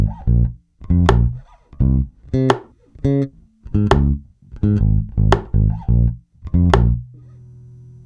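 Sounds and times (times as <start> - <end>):
bass: 0.0 - 8.0.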